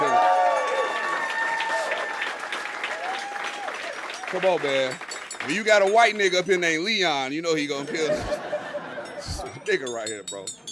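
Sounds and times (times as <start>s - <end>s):
concert audience cheering: 0.0s - 5.9s
speech: 4.3s - 8.6s, 9.7s - 10.6s
laughter: 7.7s - 9.7s.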